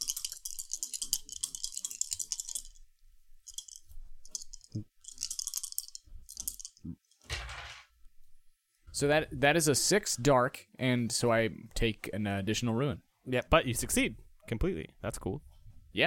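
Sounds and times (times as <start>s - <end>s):
dice being rolled: 0.0s - 2.8s, 3.4s - 7.8s
speech: 9.0s - 16.0s.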